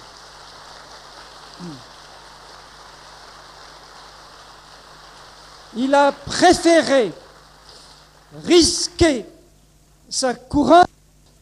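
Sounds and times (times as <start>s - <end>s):
audience applause: 0.0s - 8.8s
speech: 1.6s - 1.9s, 5.7s - 7.2s, 8.3s - 9.3s, 10.1s - 10.9s.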